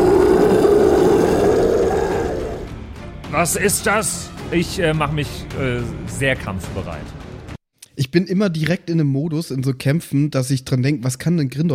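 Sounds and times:
game master voicing a creature roaring: 0.0s - 2.7s
speech: 3.4s - 7.2s, 8.0s - 11.7s.

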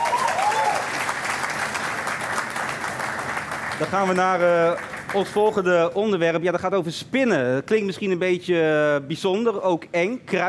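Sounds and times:
audience applause: 0.0s - 5.7s
speech: 3.8s - 10.4s.

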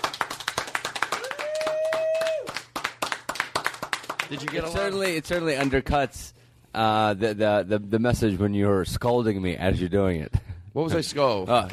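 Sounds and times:
audience applause at a live radio show recording: 0.0s - 5.0s
speech: 4.3s - 11.7s.

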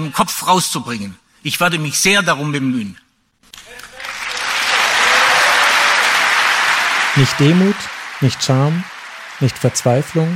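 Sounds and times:
speech: 0.0s - 3.0s, 7.2s - 10.3s
audience applause: 3.5s - 10.3s.

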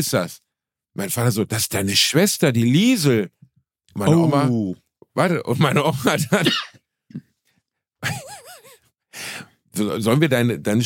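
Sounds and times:
speech: 0.0s - 0.4s, 1.0s - 7.2s, 8.0s - 8.3s, 9.3s - 10.8s
laughter: 5.5s - 6.5s, 8.0s - 8.8s
cough: 6.1s - 7.2s.

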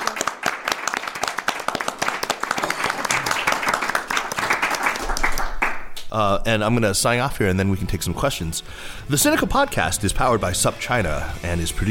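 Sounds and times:
audience applause: 0.0s - 5.8s
speech: 6.1s - 11.8s.

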